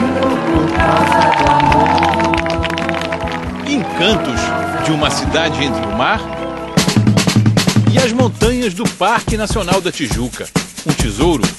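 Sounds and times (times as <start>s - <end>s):
crowd applauding the sunset: 0.0s - 8.2s
speech: 4.9s - 6.4s, 8.2s - 11.5s.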